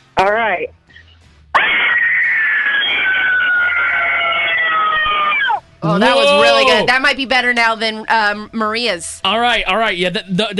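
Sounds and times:
speech: 0.2s - 1.0s, 5.8s - 10.5s
person screaming: 1.6s - 6.9s.

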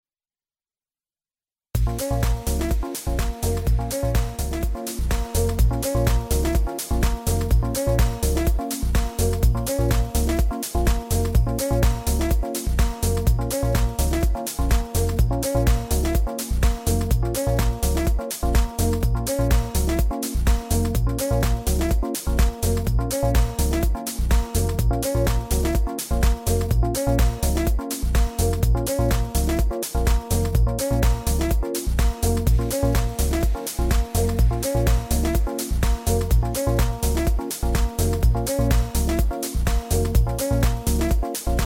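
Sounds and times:
deep house music: 1.8s - 41.6s.

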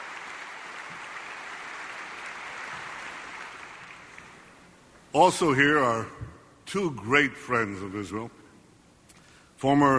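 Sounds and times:
crowd applauding a speech: 0.0s - 4.5s
speech: 5.2s - 8.4s, 9.6s - 9.9s.

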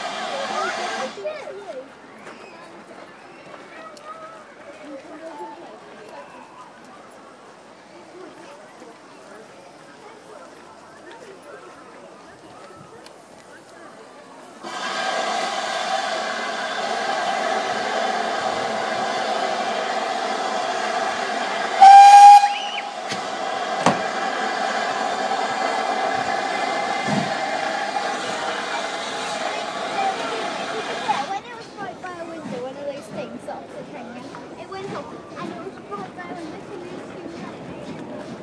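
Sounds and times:
steam train leaving platform: 0.0s - 1.7s, 14.4s - 38.4s.

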